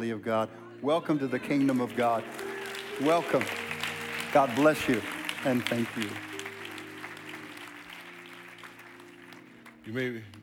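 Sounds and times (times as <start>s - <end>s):
speech: 0.0s - 3.7s, 4.3s - 6.3s, 9.8s - 10.4s
audience applauding: 1.3s - 10.4s.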